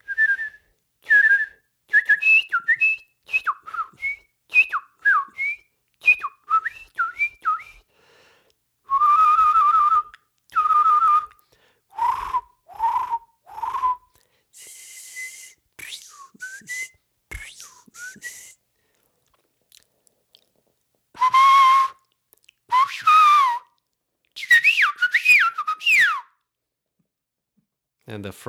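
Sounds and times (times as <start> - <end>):
person whistling songbird imitations: 0.0 - 7.9, 8.9 - 18.6, 21.2 - 22.0, 22.7 - 23.7, 24.4 - 26.4
speech: 28.2 - 28.4.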